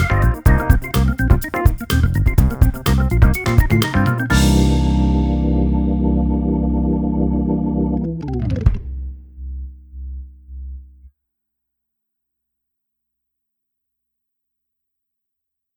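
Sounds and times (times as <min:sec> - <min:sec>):
Organelle synthesizer: 0:00.0 - 0:09.3.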